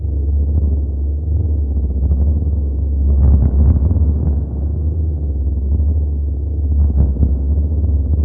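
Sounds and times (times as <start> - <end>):
very low drones: 0.0 - 8.2.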